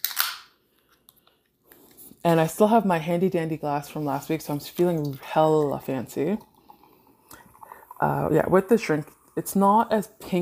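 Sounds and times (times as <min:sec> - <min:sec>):
drink container cracking open: 0:00.0 - 0:00.5
speech: 0:02.2 - 0:06.5, 0:08.0 - 0:10.4
fizzy hiss: 0:03.8 - 0:09.8.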